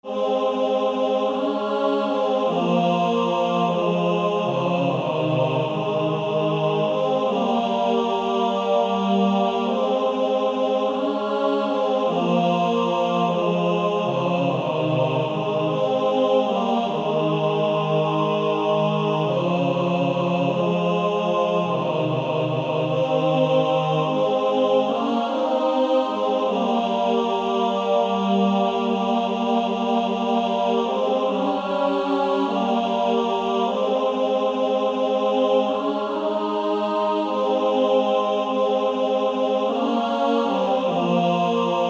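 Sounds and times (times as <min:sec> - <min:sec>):
male choir singing: 0:00.0 - 0:41.8.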